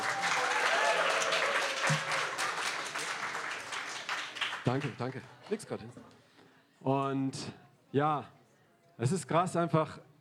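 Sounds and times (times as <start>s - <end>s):
audience cheering: 0.0s - 3.2s
audience applause: 0.0s - 5.6s
speech: 4.7s - 6.2s, 6.8s - 8.4s, 9.0s - 10.1s.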